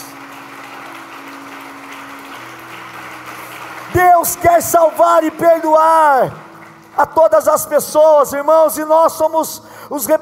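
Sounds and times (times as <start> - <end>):
audience applause: 0.0 - 8.2
speech: 4.2 - 6.4, 7.0 - 10.1.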